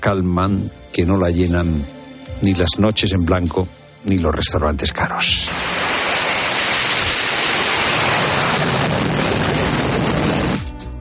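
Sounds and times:
speech: 0:00.0 - 0:05.4
United States and United Kingdom military jet aircraft taking off: 0:05.5 - 0:10.6.

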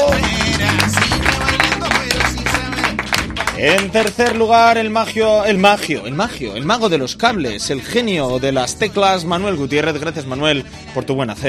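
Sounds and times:
audience applause: 0:00.0 - 0:04.5
speech: 0:03.6 - 0:11.4.

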